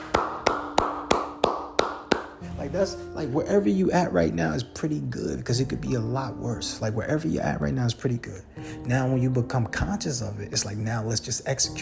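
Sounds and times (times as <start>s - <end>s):
hands clapping: 0.0s - 2.4s
speech: 2.7s - 11.7s.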